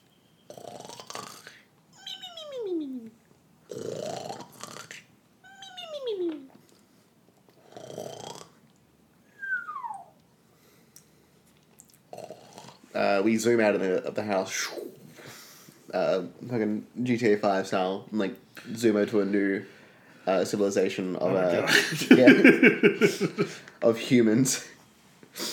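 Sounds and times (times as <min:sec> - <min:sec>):
voice imitating cartoon snoring: 0:00.5 - 0:03.0, 0:03.7 - 0:05.0, 0:07.7 - 0:08.6
speech: 0:13.1 - 0:14.8, 0:15.9 - 0:24.7
laughter: 0:21.6 - 0:23.6.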